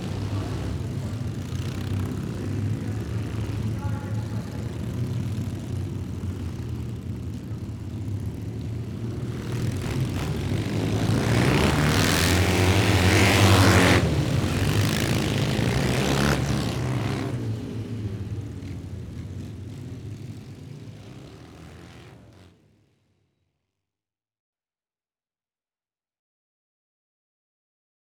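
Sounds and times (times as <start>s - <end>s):
display team motorcycle engine: 0.0s - 22.4s.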